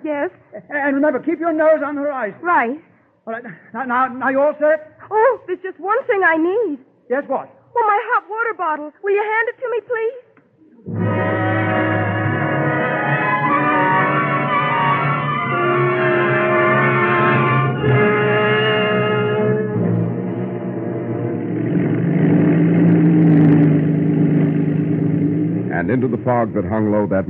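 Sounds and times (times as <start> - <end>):
speech: 0.1 - 10.2, 25.9 - 27.2
small monoplane engine puttering: 10.8 - 27.2.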